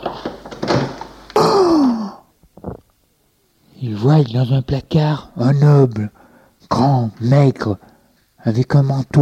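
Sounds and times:
door opening: 0.4 - 1.2
speech: 3.9 - 9.2.

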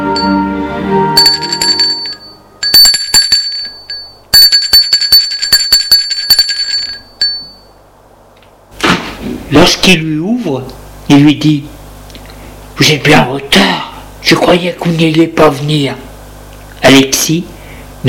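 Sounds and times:
chime-like tones: 0.1 - 0.5, 1.1 - 7.7
shrill metallic doorbell ringing: 0.1 - 0.5, 1.1 - 7.8
speech: 9.6 - 11.7, 12.8 - 16.1, 16.9 - 18.0.

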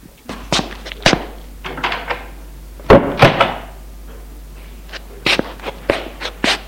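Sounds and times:
shuffling footsteps: 0.2 - 1.8, 4.0 - 6.6
apartment door closing with a heavy double thud: 2.9 - 3.7.

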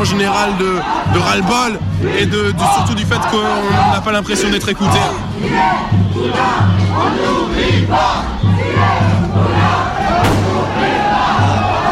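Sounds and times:
speech: 0.0 - 11.5
protest crowd shouting: 0.0 - 11.9
rhythmic chanting or drumming: 0.0 - 11.9
sharp bangs: 10.2 - 11.3.

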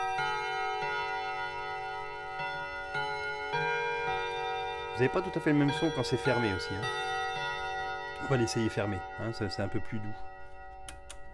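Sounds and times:
clock chime: 0.0 - 11.3
speech: 5.0 - 7.2, 8.2 - 10.4.

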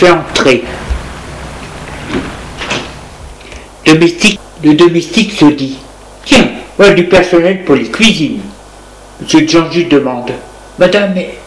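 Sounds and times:
speech: 0.0 - 0.8, 3.9 - 8.5, 9.2 - 11.4
steady low hiss: 0.0 - 11.4
door opening: 1.9 - 3.0.

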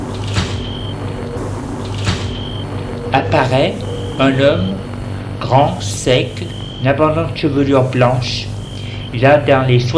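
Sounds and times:
front door opening: 0.0 - 5.1
speech: 3.1 - 8.5, 9.1 - 9.9.

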